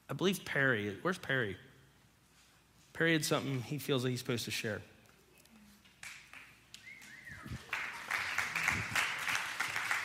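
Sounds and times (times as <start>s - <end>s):
speech: 0.1s - 1.7s, 3.0s - 4.9s
crowd applauding: 6.0s - 10.0s
short rising whistle from the audience: 6.8s - 7.7s.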